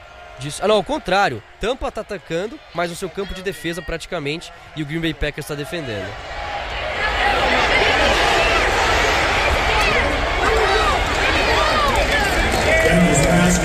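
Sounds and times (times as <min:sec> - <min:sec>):
American football stadium crowd cheering: 0:00.0 - 0:13.6
speech: 0:00.4 - 0:06.4, 0:13.4 - 0:13.6.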